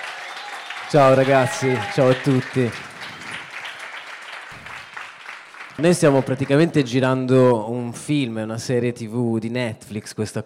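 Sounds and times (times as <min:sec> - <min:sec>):
audience applause for a book author at a live event: 0:00.0 - 0:07.0
speech: 0:00.9 - 0:02.9, 0:05.8 - 0:10.4.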